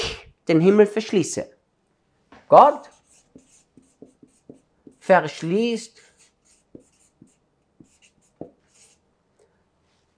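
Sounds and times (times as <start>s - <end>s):
speech: 0.5s - 1.6s, 2.5s - 3.0s, 5.1s - 6.1s
scratchy writing on a board: 2.8s - 5.1s, 5.9s - 9.0s.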